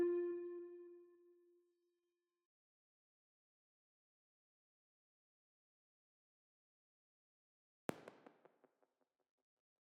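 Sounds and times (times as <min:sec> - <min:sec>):
synths: 0:00.0 - 0:00.9.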